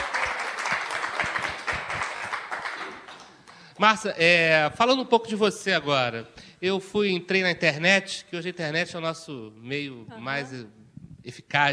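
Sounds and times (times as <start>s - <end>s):
crowd applause: 0.0s - 3.6s
speech: 3.8s - 11.7s.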